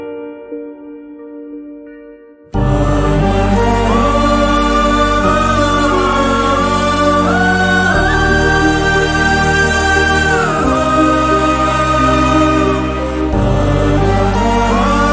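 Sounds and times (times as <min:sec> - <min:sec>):
background music score: 0:02.5 - 0:15.1.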